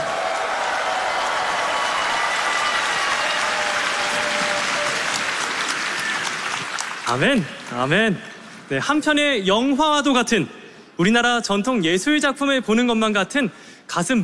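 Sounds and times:
audience applause: 0.0 - 7.9
speech: 7.1 - 14.2.

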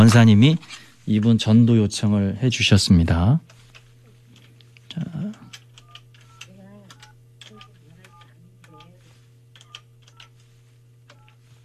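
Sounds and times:
speech: 0.0 - 3.5, 5.0 - 5.4
telephone number dialed on a push-button phone: 5.8 - 8.9, 9.6 - 10.3, 11.1 - 11.4.

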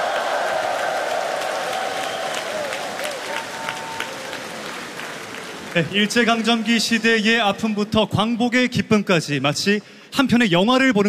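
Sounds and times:
audience applause for children's choir: 0.0 - 6.8
speech: 5.8 - 11.0.

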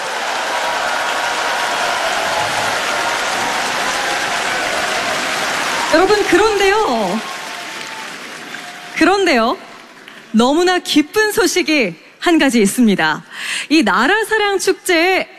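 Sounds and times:
audience applause: 0.0 - 10.4
speech: 5.9 - 7.3, 9.0 - 9.6, 10.3 - 15.3.

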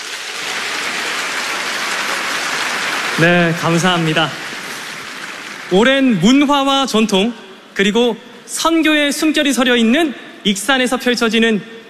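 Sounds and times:
audience applause of thanks: 0.0 - 6.3
speech: 3.2 - 4.4, 5.7 - 11.8.

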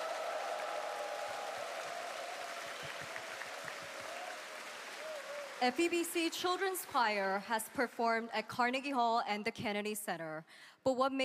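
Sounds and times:
audience applause: 0.0 - 7.4
speech: 5.6 - 11.2.

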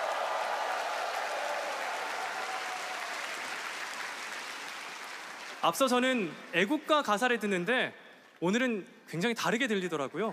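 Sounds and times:
applause: 0.0 - 7.6
speech: 5.6 - 10.3.

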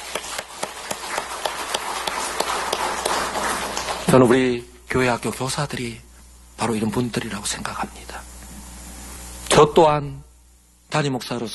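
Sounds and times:
audience applause: 0.0 - 4.3
speech: 4.1 - 8.3, 9.6 - 10.2, 10.9 - 11.5.

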